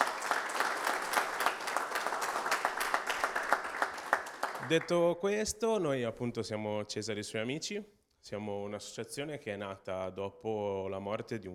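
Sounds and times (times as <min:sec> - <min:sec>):
audience applause: 0:00.0 - 0:05.0
speech: 0:04.7 - 0:11.5.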